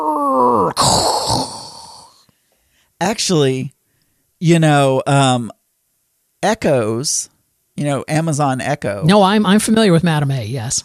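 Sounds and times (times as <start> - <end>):
voice imitating sci-fi holodeck door opening: 0.0 - 2.2
speech: 3.0 - 3.8, 4.4 - 5.6, 6.4 - 10.8.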